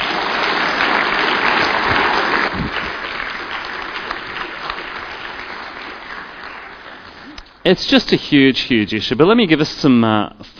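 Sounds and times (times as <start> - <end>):
audience applause: 0.0 - 7.7
speech: 7.7 - 10.5.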